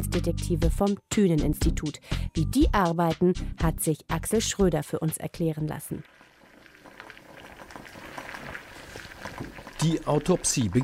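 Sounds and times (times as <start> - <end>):
speech: 0.1 - 6.2, 9.8 - 10.8
water boiling in a small lab beaker with a wooden cube: 5.8 - 10.8.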